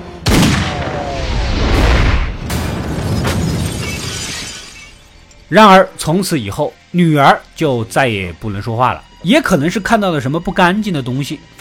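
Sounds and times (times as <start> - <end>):
gunshot in a Chinese suspense thriller film: 0.3 - 3.4
speech: 5.5 - 11.5.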